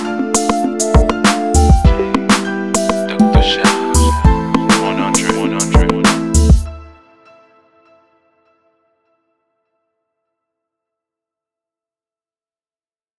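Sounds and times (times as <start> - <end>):
instrumental beat: 0.0 - 6.9.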